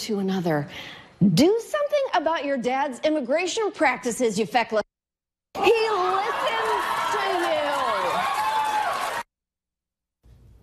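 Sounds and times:
speech: 0.0s - 4.8s
high whoops: 5.6s - 9.2s
audience cheering and clapping: 5.6s - 9.3s.

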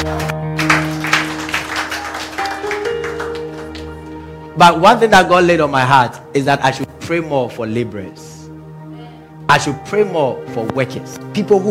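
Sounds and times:
speech: 0.0s - 0.4s, 4.6s - 8.2s, 9.5s - 11.6s
audience clapping: 0.0s - 4.3s.

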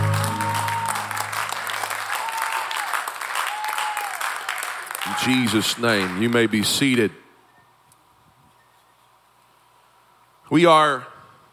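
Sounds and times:
audience hand clapping: 0.0s - 6.6s
speech: 5.1s - 7.2s, 10.5s - 11.1s.

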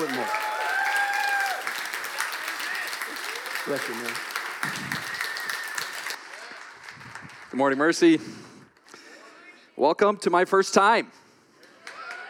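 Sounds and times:
crowd applauding: 0.0s - 8.2s, 11.6s - 12.2s
speech: 3.7s - 4.9s, 7.6s - 8.4s, 9.8s - 11.2s.

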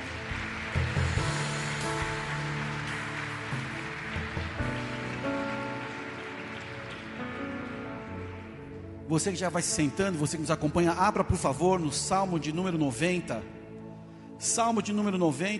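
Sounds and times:
audience applauding: 0.0s - 8.9s
speech: 9.1s - 13.6s, 14.4s - 15.5s.

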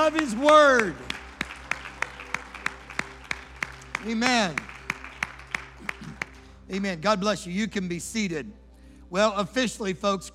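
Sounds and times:
speech: 0.0s - 1.1s, 4.0s - 4.7s, 6.7s - 10.3s
audience clapping in rhythm: 0.0s - 6.6s.

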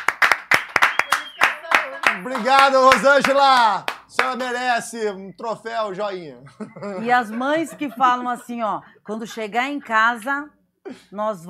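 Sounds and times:
round of applause: 0.0s - 4.6s
laughter: 1.2s - 2.6s, 6.4s - 8.8s
speech: 2.2s - 11.4s.

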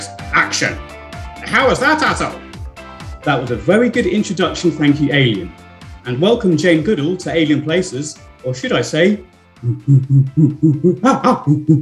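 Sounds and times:
speech: 0.4s - 2.4s, 3.2s - 11.8s
person imitating a chimpanzee pant-hoot greeting: 9.6s - 11.8s.

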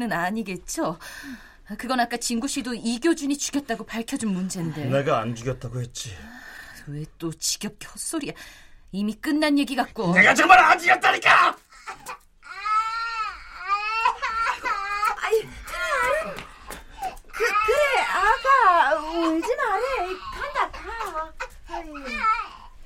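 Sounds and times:
speech: 0.0s - 12.2s
young child crying and wailing: 11.8s - 16.4s, 17.3s - 22.7s.

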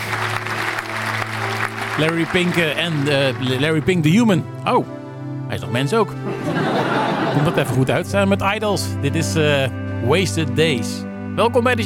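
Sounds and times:
audience applause: 0.0s - 4.2s
speech: 2.0s - 11.8s
laughter: 6.2s - 8.1s.

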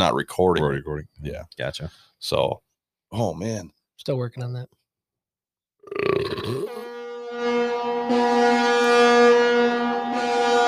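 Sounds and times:
speech: 0.0s - 4.8s, 5.8s - 6.8s
cruise ship horn: 6.7s - 10.6s.

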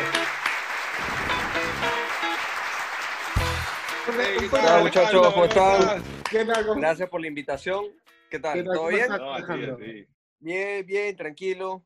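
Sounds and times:
applause: 0.0s - 6.8s
speech: 4.2s - 11.8s.

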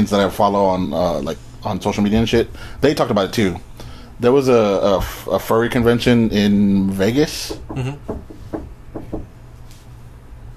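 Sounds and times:
speech: 0.0s - 8.4s
knock on a door: 7.4s - 9.3s.

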